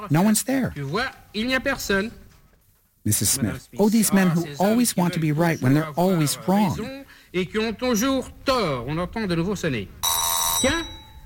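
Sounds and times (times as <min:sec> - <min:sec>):
speech: 0:00.0 - 0:02.2, 0:03.0 - 0:10.0, 0:10.6 - 0:11.0
doorbell ringing: 0:10.0 - 0:11.2.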